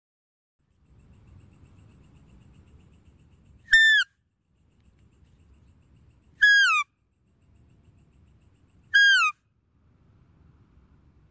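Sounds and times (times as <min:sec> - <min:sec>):
deer whistle: 0:03.7 - 0:04.1, 0:06.4 - 0:06.9, 0:09.0 - 0:09.4.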